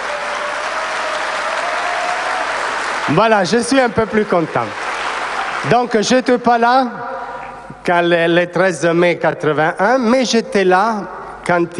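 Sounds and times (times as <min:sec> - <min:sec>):
audience applause for Côte d'Ivoire: 0:00.0 - 0:06.0
speech: 0:03.1 - 0:04.8, 0:05.6 - 0:07.2, 0:07.8 - 0:11.7.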